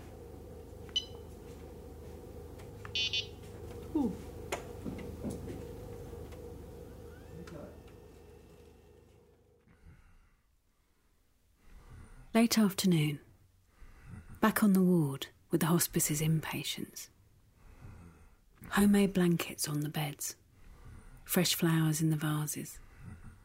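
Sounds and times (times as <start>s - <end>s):
steady low hum: 0.0s - 10.1s
wheelchair electronic beep: 0.8s - 1.6s, 2.8s - 8.8s
speech: 4.0s - 4.3s, 12.4s - 13.2s, 14.5s - 17.1s, 18.7s - 20.4s, 21.3s - 22.8s
faint breathing: 9.6s - 12.4s, 13.6s - 14.4s, 17.5s - 18.5s, 20.5s - 21.3s, 22.8s - 23.4s.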